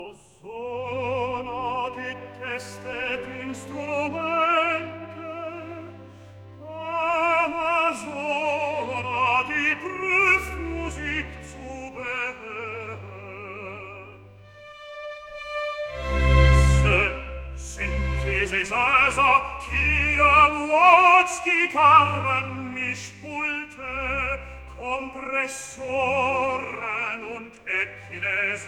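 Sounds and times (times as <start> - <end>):
opera music: 0.0 - 28.6.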